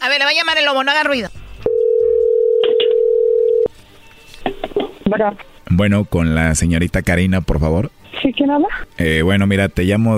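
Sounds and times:
speech: 0:00.0 - 0:01.4, 0:05.1 - 0:10.1
telephone dial tone: 0:01.7 - 0:03.7.

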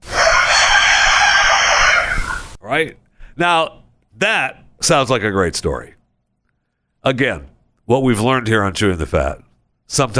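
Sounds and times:
rooster crowing: 0:00.0 - 0:02.6
speech: 0:02.7 - 0:06.0, 0:07.0 - 0:10.1.

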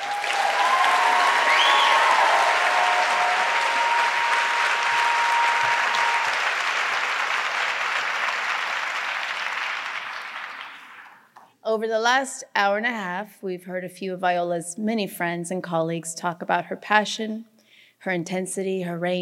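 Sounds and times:
whistles or cheers: 0:00.0 - 0:06.6
audience applause: 0:00.0 - 0:11.3
speech: 0:11.8 - 0:19.2.

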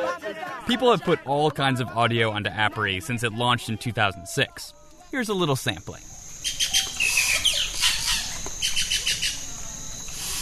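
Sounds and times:
speech: 0:00.2 - 0:06.9
steady insect-like hiss in Amazon rainforest: 0:02.3 - 0:10.4
birds chirping in Amazon rainforest: 0:05.0 - 0:10.4.

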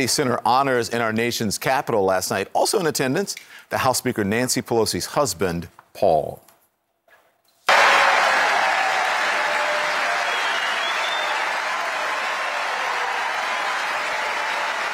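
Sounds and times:
speech: 0:00.0 - 0:06.5
audience cheering: 0:07.7 - 0:14.9.

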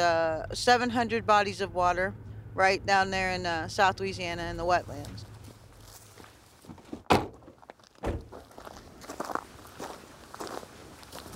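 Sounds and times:
speech: 0:00.0 - 0:05.3
footsteps walking to the water's edge: 0:04.8 - 0:11.3.

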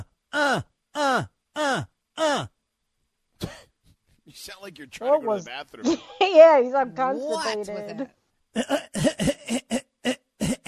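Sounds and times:
speech: 0:00.4 - 0:01.9, 0:04.5 - 0:09.8
person choking and coughing: 0:03.4 - 0:03.6, 0:08.6 - 0:10.6.

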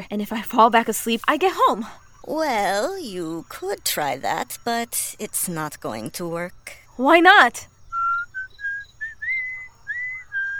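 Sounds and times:
speech: 0:00.0 - 0:07.7
bird whistling a tune: 0:07.9 - 0:10.5.

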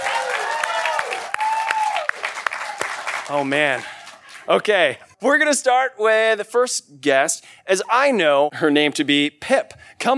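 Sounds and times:
audience clapping: 0:00.0 - 0:04.7
speech: 0:03.3 - 0:03.9, 0:04.5 - 0:10.1.

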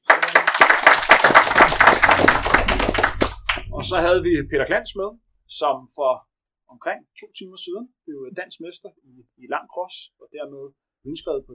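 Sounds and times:
people clapping hands: 0:00.0 - 0:04.0
speech: 0:03.8 - 0:11.5.

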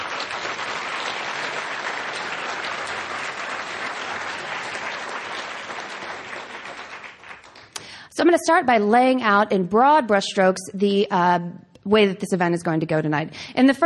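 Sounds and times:
audience applause: 0:00.0 - 0:07.8
speech: 0:08.2 - 0:13.8.

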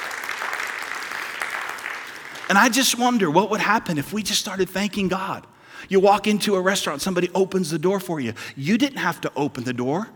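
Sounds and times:
audience applause: 0:00.0 - 0:02.8
speech: 0:02.5 - 0:10.1.

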